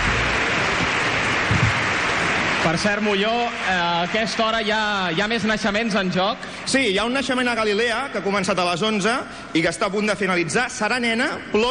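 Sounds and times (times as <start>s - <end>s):
applause for an accordion player: 0.0s - 6.3s
speech: 2.6s - 11.6s.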